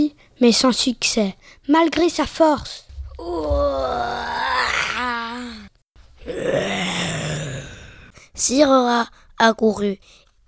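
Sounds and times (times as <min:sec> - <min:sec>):
speech: 0:00.4 - 0:04.2, 0:08.4 - 0:10.2
human voice imitating a lion roaring: 0:03.2 - 0:08.2.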